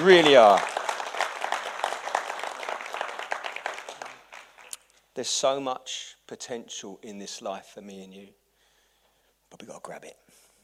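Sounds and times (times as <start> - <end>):
speech: 0.0 - 0.7, 5.2 - 8.4, 9.5 - 10.3
audience round of applause: 0.0 - 4.8.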